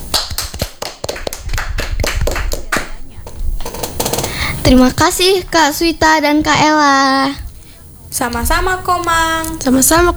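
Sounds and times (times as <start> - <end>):
audience clapping: 0.0 - 4.5
low murmur: 0.0 - 10.1
speech: 4.7 - 7.4, 8.1 - 10.1.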